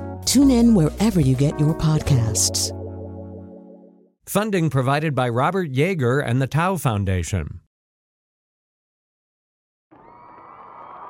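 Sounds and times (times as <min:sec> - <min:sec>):
speech: 0:00.3 - 0:02.8, 0:04.3 - 0:07.6
crowd cheering and roaring in a packed club: 0:09.9 - 0:11.0.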